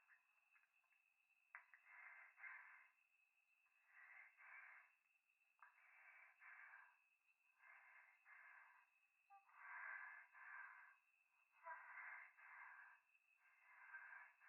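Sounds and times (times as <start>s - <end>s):
breathing close to the left ear in a bath on a mountain at night: 1.7s - 3.0s, 3.8s - 5.0s, 5.6s - 14.4s.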